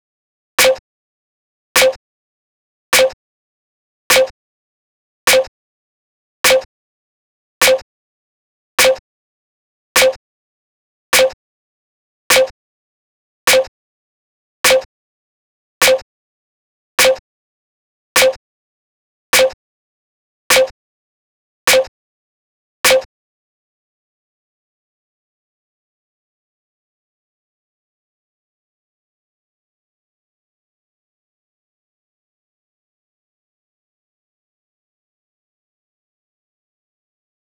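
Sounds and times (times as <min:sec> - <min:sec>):
snare drum: 0:00.6 - 0:00.8, 0:01.8 - 0:02.0, 0:03.0 - 0:03.2, 0:04.1 - 0:04.3, 0:05.3 - 0:05.5, 0:08.8 - 0:09.0, 0:10.0 - 0:10.2, 0:11.2 - 0:11.4, 0:12.3 - 0:12.5, 0:13.5 - 0:13.7, 0:17.0 - 0:17.2, 0:18.2 - 0:18.4, 0:19.4 - 0:19.6, 0:20.5 - 0:20.7, 0:21.7 - 0:21.9, 0:22.9 - 0:23.1.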